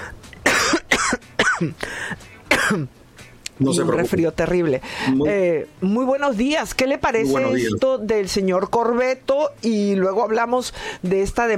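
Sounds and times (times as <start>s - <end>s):
person coughing: 0.4s - 1.8s, 2.5s - 2.9s
speech: 1.6s - 3.0s, 3.6s - 11.5s.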